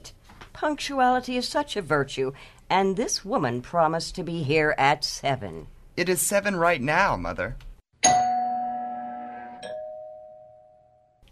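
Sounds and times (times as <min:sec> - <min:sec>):
speech: 0:00.6 - 0:07.7
doorbell ringing two-note ding-dong: 0:08.0 - 0:11.1.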